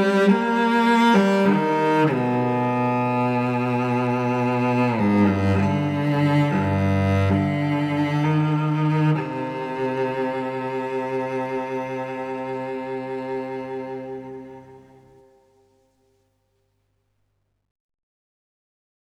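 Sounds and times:
cello playing a variation: 0.0s - 15.3s.

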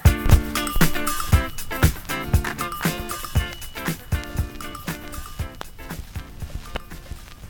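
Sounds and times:
splash: 0.2s - 5.5s.

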